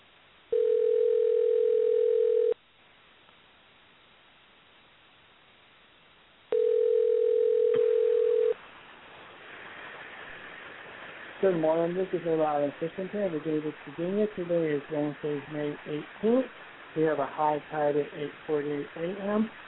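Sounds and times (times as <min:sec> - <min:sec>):
phone ringback tone over a call line: 0:00.5 - 0:02.6, 0:06.5 - 0:08.6
hissy phone line noise: 0:08.6 - 0:19.6
speech: 0:11.4 - 0:19.6.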